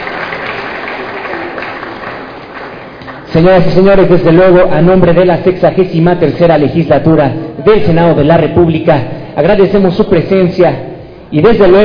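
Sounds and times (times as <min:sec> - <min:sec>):
audience applause: 0:00.0 - 0:03.3
speech: 0:03.3 - 0:11.8.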